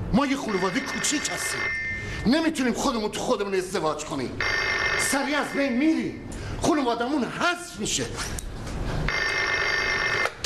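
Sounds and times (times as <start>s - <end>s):
speech: 0.1s - 8.4s
telephone ringing: 0.4s - 2.3s, 4.4s - 5.8s, 9.1s - 10.4s.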